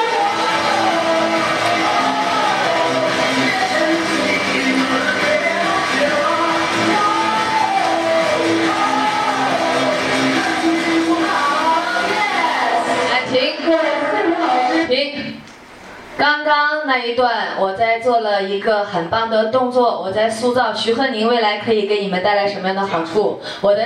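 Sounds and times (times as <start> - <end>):
applause: 0.0 - 12.2
large crowd cheering and shouting: 0.0 - 14.9
speech: 17.0 - 23.8.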